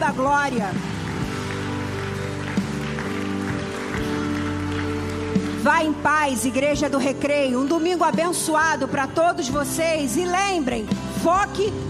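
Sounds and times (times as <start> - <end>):
speech: 0.0 - 1.0, 5.6 - 11.8
audience applause: 0.8 - 5.6.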